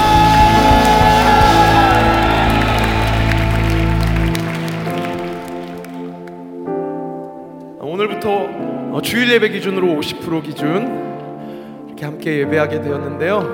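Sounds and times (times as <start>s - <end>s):
audience applause and cheering: 0.0s - 6.5s
sustained keyboard chords: 0.0s - 13.5s
speech: 9.0s - 11.2s, 12.0s - 13.5s.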